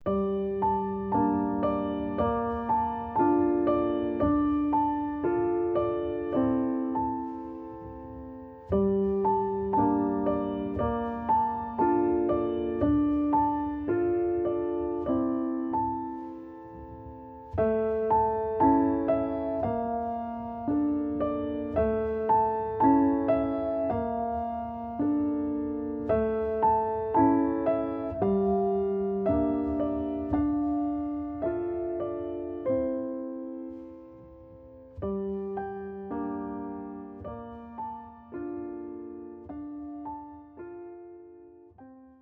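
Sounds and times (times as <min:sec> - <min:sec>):
instrumental music: 0:00.0 - 0:42.2.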